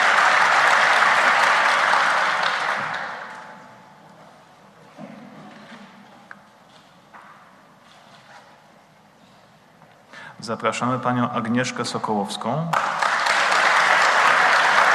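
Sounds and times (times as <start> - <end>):
audience applause: 0.0 - 3.6, 12.8 - 14.9
speech: 10.5 - 13.0.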